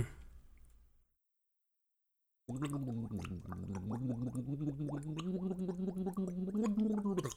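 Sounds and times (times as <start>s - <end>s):
person gargling a sung melody: 2.5s - 7.3s.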